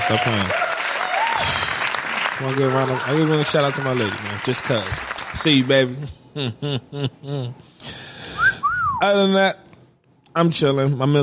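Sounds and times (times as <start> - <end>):
round of applause: 0.0 - 6.0
speech: 0.1 - 0.6, 1.4 - 1.6, 2.4 - 7.8, 9.0 - 9.6, 10.4 - 11.2.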